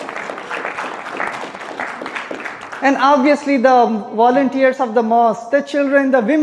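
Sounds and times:
crowd applauding: 0:00.0 - 0:03.4
speech: 0:02.8 - 0:06.4.

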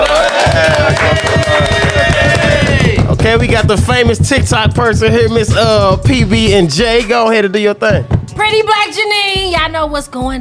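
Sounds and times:
people clapping: 0:00.0 - 0:06.1
speech: 0:03.3 - 0:10.4.

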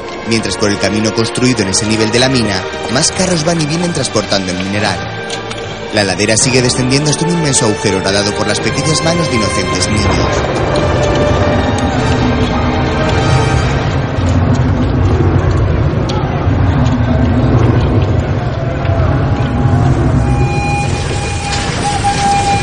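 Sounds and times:
passenger train rumbling into a station: 0:00.0 - 0:22.6
speech: 0:00.3 - 0:11.7
high squealing tone: 0:20.0 - 0:22.6.

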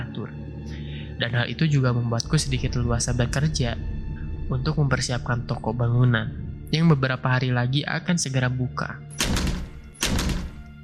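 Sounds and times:
speech: 0:01.2 - 0:09.5
kitchen door opening or closing: 0:09.2 - 0:10.8.

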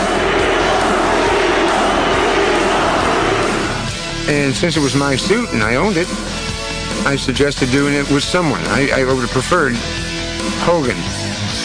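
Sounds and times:
arena crowd chanting: 0:00.0 - 0:04.0
speech: 0:04.3 - 0:06.4, 0:07.0 - 0:11.2.

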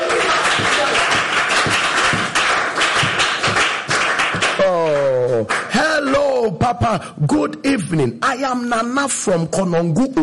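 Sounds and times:
audience clapping: 0:00.0 - 0:06.5
speech: 0:06.7 - 0:10.2.

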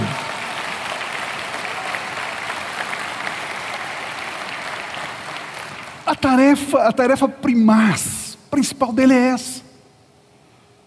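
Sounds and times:
audience applauding: 0:00.0 - 0:06.1
speech: 0:06.1 - 0:09.7.

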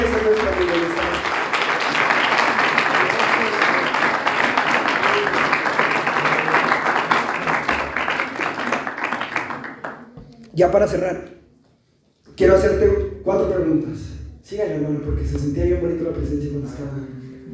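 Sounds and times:
audience applause: 0:00.0 - 0:10.1
speech: 0:10.6 - 0:11.3, 0:12.4 - 0:17.5.

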